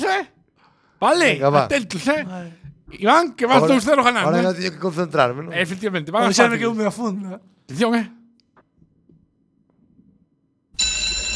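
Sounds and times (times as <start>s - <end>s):
speech: 1.0s - 8.2s
electric school bell ringing: 10.8s - 11.3s.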